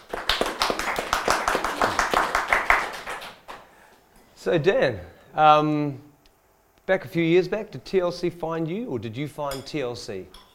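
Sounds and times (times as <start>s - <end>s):
crowd applause: 0.0s - 3.6s
speech: 4.4s - 6.1s, 6.9s - 10.5s.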